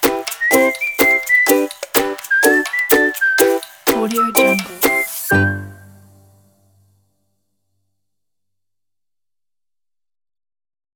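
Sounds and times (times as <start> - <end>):
children's march music: 0.0 - 6.4.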